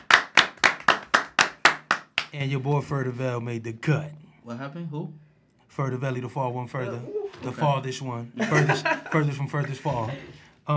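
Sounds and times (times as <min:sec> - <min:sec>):
sharp crisp claps: 0:00.0 - 0:02.4
speech: 0:02.3 - 0:10.7
laughter: 0:07.2 - 0:10.5.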